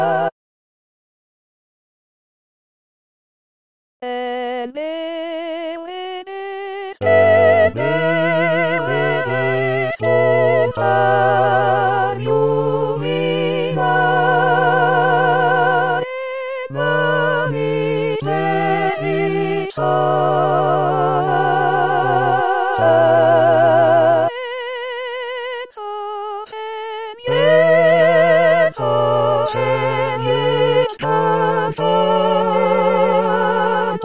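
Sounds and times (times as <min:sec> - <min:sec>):
all voices: 0:07.0 - 0:16.1, 0:16.7 - 0:25.8, 0:27.2 - 0:34.0.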